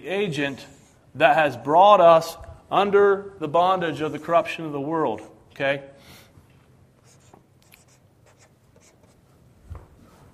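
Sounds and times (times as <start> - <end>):
speech: 0.0 - 5.9
writing on a board: 7.0 - 9.3.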